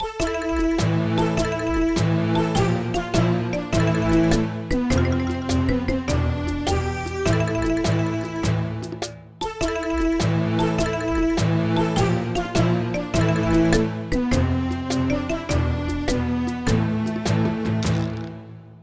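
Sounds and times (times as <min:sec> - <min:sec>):
lobby background music: 0:00.0 - 0:18.8.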